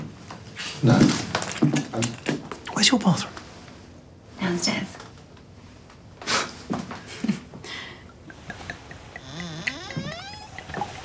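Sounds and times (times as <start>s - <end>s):
speech: 0.8s - 3.4s, 4.5s - 5.0s
white wine pouring into a glass: 8.5s - 11.0s.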